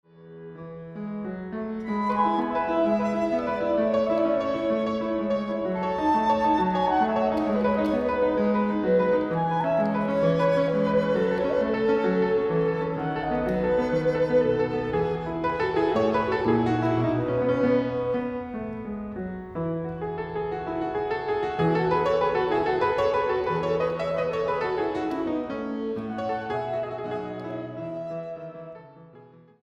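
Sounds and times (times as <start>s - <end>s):
lively sonata in A major: 0.1s - 29.6s.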